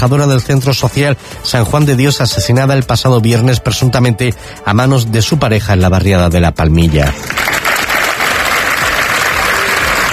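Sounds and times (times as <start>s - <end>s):
speech: 0.0s - 7.5s
crowd applause at a memorial gathering: 7.2s - 10.1s.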